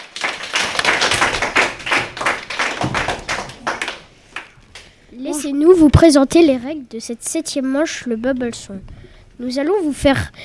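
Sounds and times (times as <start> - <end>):
audience applause: 0.0 - 4.9
speech: 5.4 - 10.4.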